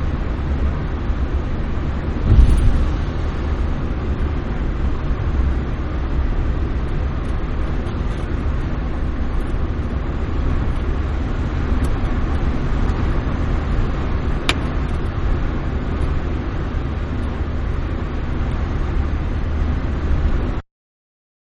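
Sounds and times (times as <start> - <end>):
small car driving at 55mph heard from the interior: 0.2 - 20.6.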